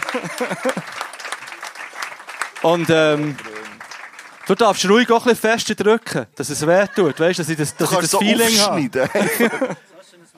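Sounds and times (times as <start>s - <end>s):
laughter: 0.0s - 1.5s, 6.4s - 9.9s
audience applause: 0.0s - 5.2s
speech: 0.1s - 1.1s, 2.6s - 3.5s, 4.5s - 10.3s
person calling out: 7.8s - 8.9s.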